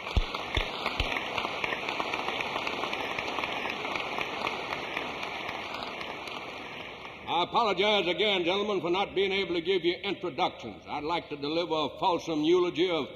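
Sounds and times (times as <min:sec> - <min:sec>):
audience applause: 0:00.0 - 0:07.5
speech: 0:07.4 - 0:13.1.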